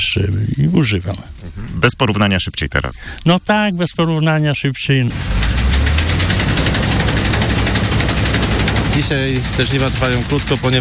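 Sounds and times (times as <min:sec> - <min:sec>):
speech: 0:00.1 - 0:05.5, 0:09.0 - 0:10.7
old combine harvester engine running: 0:04.2 - 0:10.7.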